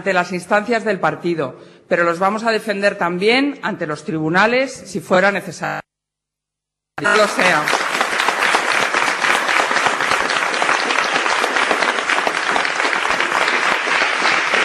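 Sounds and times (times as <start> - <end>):
speech: 0.0 - 5.8, 7.0 - 7.8
applause from Tomás Gómez's party supporters: 7.0 - 14.6.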